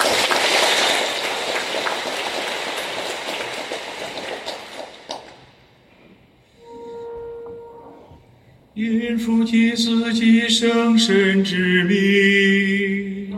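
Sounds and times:
audience applauding warmly: 0:00.0 - 0:05.6
speech: 0:08.8 - 0:13.0.

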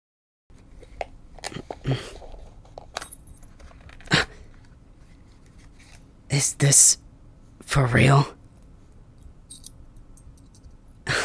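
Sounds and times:
gift being unwrapped: 0:01.4 - 0:06.1
speech: 0:06.4 - 0:07.0, 0:07.7 - 0:08.4
metal dog tag jingling as gift is unwrapped: 0:09.5 - 0:10.8.

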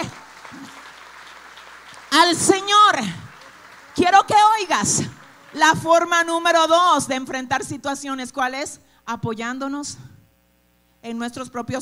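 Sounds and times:
audience applause: 0:00.0 - 0:06.7
speech: 0:02.2 - 0:03.2, 0:04.0 - 0:10.1, 0:11.0 - 0:11.8.

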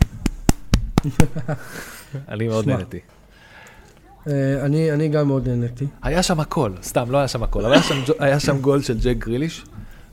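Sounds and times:
hands clapping: 0:00.0 - 0:01.5
speech: 0:01.0 - 0:03.2, 0:04.2 - 0:09.8.

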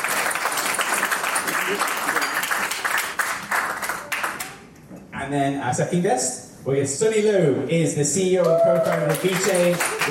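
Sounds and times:
audience applause: 0:00.0 - 0:04.6, 0:08.4 - 0:10.0
speech: 0:05.3 - 0:10.0.

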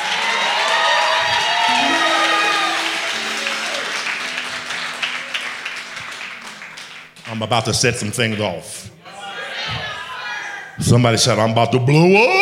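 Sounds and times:
audience clapping: 0:00.0 - 0:08.4
speech: 0:07.3 - 0:09.0, 0:10.8 - 0:12.4.

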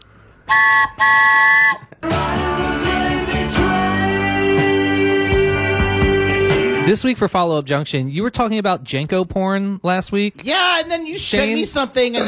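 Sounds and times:
speech: 0:00.5 - 0:01.4, 0:07.0 - 0:12.2
whistle or horn toots: 0:00.5 - 0:01.9
busy music track: 0:00.5 - 0:07.2.

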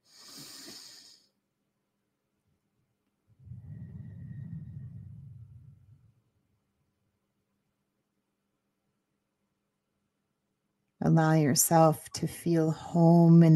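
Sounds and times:
deep breath during a guided meditation: 0:00.0 - 0:01.4, 0:03.3 - 0:06.4
speech: 0:11.0 - 0:13.5.

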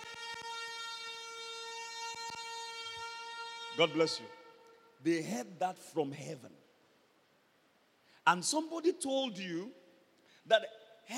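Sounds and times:
trumpet blast: 0:00.0 - 0:05.5
speech: 0:03.8 - 0:04.4, 0:05.0 - 0:06.6, 0:08.2 - 0:09.8, 0:10.4 - 0:11.1.

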